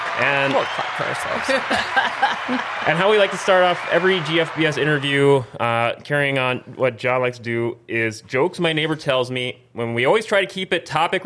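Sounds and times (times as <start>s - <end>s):
round of applause: 0.0s - 5.4s
speech: 0.2s - 11.2s
laughter: 0.6s - 5.5s.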